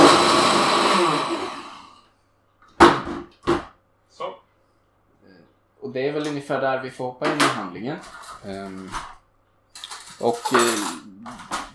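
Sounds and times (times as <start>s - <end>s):
blender motor whirring: 0.0s - 2.0s
speech: 5.9s - 9.2s, 10.2s - 11.6s.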